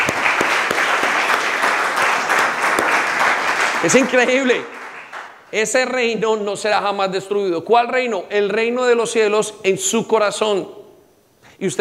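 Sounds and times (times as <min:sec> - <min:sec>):
audience applause: 0:00.0 - 0:05.5
speech: 0:03.8 - 0:04.8, 0:05.5 - 0:10.8, 0:11.6 - 0:11.7.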